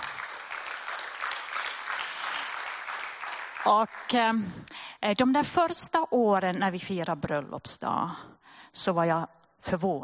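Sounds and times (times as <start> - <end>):
audience applause: 0.0 - 4.4
speech: 3.6 - 10.0.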